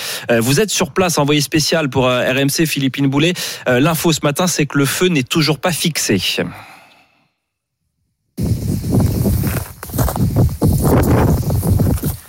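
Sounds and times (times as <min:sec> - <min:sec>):
speech: 0:00.2 - 0:06.7
wind blowing into a reporter's microphone: 0:08.4 - 0:12.2.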